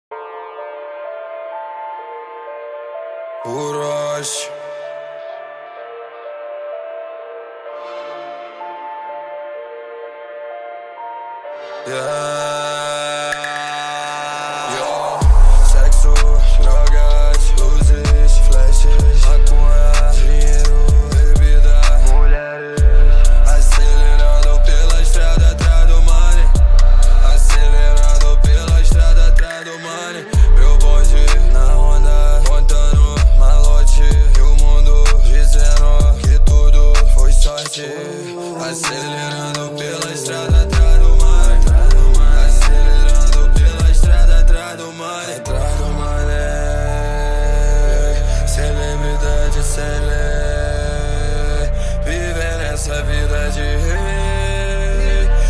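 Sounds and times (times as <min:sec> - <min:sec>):
deep bass: 0:15.0 - 0:29.4, 0:30.4 - 0:37.5, 0:40.5 - 0:44.6, 0:45.5 - 0:55.4.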